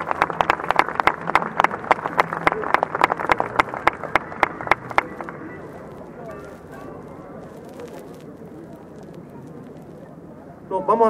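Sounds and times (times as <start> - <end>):
audience applauding a musician introduced on stage: 0.0 - 6.6.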